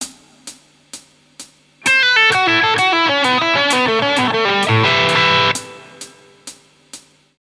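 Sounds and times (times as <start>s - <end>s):
guitar licks: 1.8s - 6.3s.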